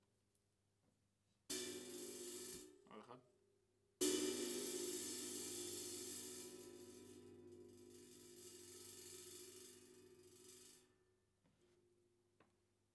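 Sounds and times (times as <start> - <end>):
ride cymbal: 1.5 - 2.8, 4.0 - 10.6.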